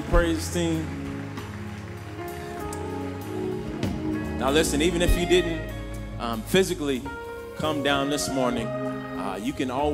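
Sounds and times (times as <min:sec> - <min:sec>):
audience clapping hands in praise: 0:00.0 - 0:05.4
speech: 0:00.2 - 0:01.0, 0:04.4 - 0:09.9.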